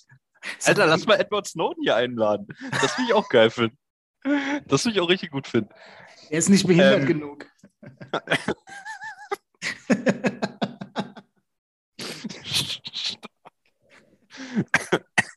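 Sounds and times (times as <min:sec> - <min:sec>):
speech: 0:00.0 - 0:08.9
laughter: 0:02.5 - 0:03.6, 0:06.6 - 0:11.4
person coughing: 0:14.5 - 0:15.3.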